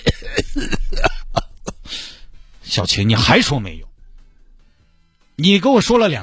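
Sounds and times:
coughing: 0.0 - 2.2
speech: 2.7 - 3.9, 5.4 - 6.2.

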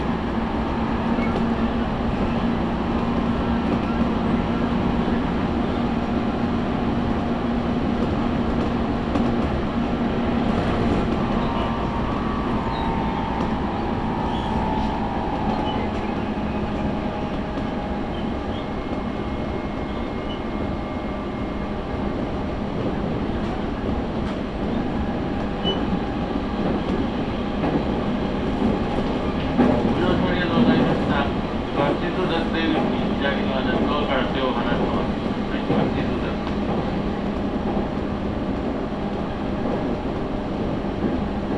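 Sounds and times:
train rail rumble on the Tokaido Line platform: 0.0 - 41.5
tonal hums and whines: 10.8 - 21.5.

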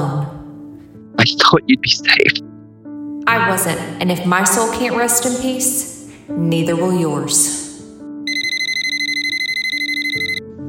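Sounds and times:
speech: 1.2 - 2.5, 3.3 - 7.7
telephone ringing: 8.3 - 10.4.

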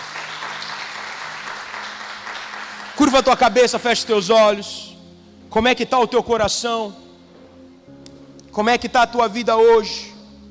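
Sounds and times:
applause at a church worship service: 0.0 - 3.8
speech: 3.0 - 4.9, 5.5 - 7.1, 8.5 - 10.1.

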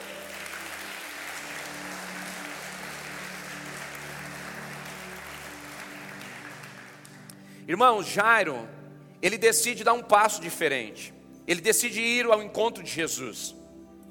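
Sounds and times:
audience applauding: 0.0 - 7.4
speech: 7.7 - 13.6.

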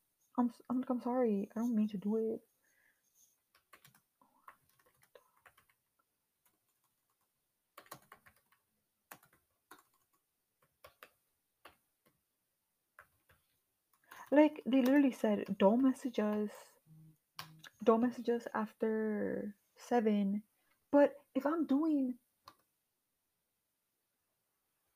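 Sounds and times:
speech: 0.4 - 2.6, 14.4 - 16.7, 17.8 - 22.2
aggressive typing on a computer keyboard: 3.6 - 11.8.

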